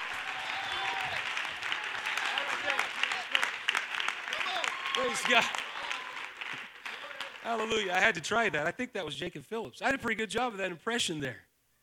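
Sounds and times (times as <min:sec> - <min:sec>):
crowd clapping hands: 0:00.0 - 0:08.5
speech: 0:05.1 - 0:05.6, 0:07.5 - 0:11.5.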